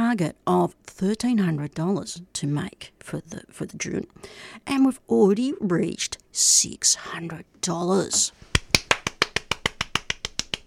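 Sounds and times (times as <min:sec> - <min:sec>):
speech: 0:00.1 - 0:08.5
two hands clapping: 0:08.5 - 0:10.6.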